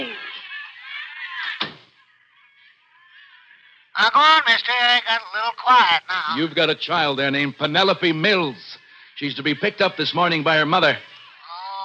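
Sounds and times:
door shutting: 0:01.6 - 0:01.9
speech: 0:04.0 - 0:11.1.

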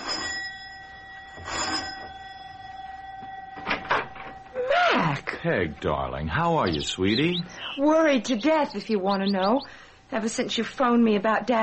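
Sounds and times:
doorbell being pressed: 0:00.0 - 0:07.2
speech: 0:05.2 - 0:11.6.

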